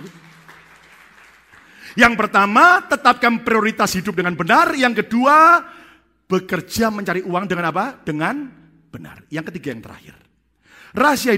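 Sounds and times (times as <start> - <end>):
audience applause: 0.0 - 2.0
speech: 1.9 - 10.2, 10.9 - 11.3.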